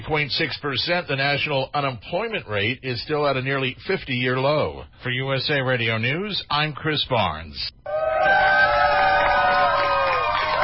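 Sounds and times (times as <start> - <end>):
speech: 0.1 - 7.8
crowd cheering at a flag raising: 7.9 - 10.6.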